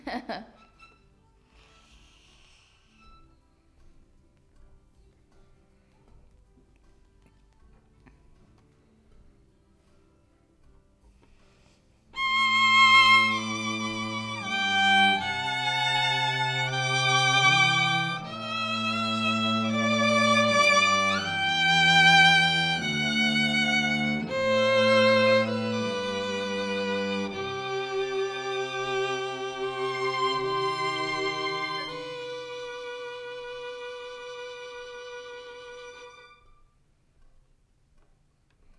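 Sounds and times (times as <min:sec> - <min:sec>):
violin: 0:00.0 - 0:04.0, 0:12.2 - 0:36.7.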